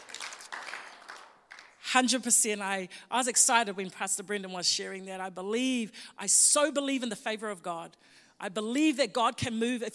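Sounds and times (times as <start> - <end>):
audience clapping: 0.0 - 1.8
speech: 1.9 - 9.9.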